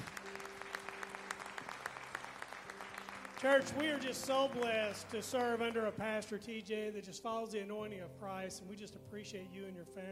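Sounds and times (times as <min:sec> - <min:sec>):
audience applause: 0:00.0 - 0:06.0
speech: 0:03.4 - 0:10.0.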